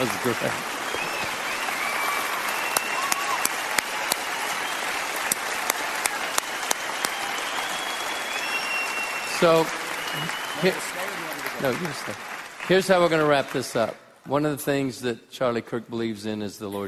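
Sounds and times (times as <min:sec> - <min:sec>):
speech: 0:00.0 - 0:00.8, 0:09.4 - 0:11.0, 0:11.6 - 0:16.8
crowd applause: 0:00.0 - 0:13.9.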